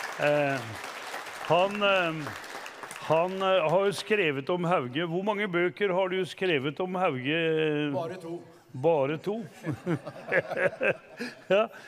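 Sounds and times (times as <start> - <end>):
audience applause: 0.0 - 4.0
speech: 0.2 - 0.9, 1.5 - 2.5, 3.1 - 11.8
laughter: 9.6 - 11.8.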